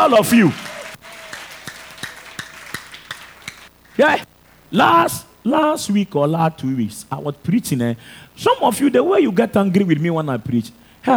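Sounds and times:
audience clapping in rhythm: 0.0 - 4.2
speech: 0.1 - 0.7, 4.0 - 11.1.

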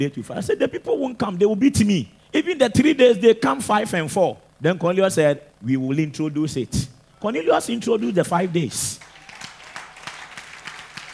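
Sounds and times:
speech: 0.0 - 9.1
audience clapping: 8.4 - 11.1.

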